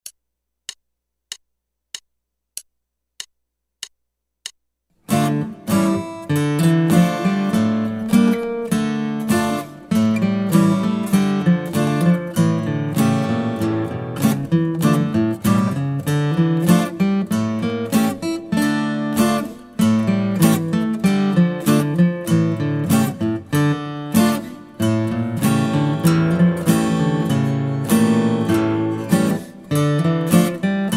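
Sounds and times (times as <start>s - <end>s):
guitar: 5.0s - 30.9s.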